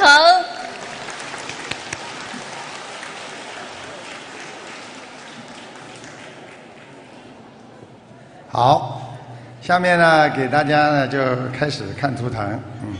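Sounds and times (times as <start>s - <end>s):
audience applause: 0.5s - 7.5s
speech: 8.6s - 8.9s, 9.6s - 12.9s.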